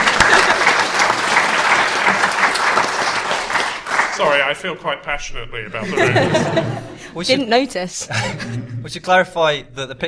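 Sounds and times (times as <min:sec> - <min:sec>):
laughter: 0:00.0 - 0:02.6, 0:05.7 - 0:07.3, 0:08.0 - 0:09.0
audience applause: 0:00.0 - 0:04.5
speech: 0:04.2 - 0:10.0.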